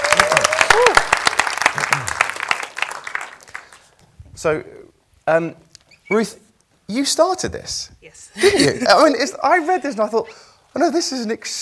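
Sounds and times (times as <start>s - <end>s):
audience round of applause: 0.0s - 3.9s
speech: 4.4s - 11.6s.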